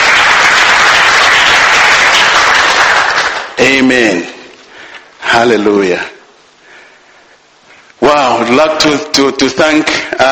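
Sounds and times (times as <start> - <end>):
audience clapping: 0.0 - 4.1
speech: 3.6 - 4.3, 5.3 - 6.1, 8.1 - 10.2.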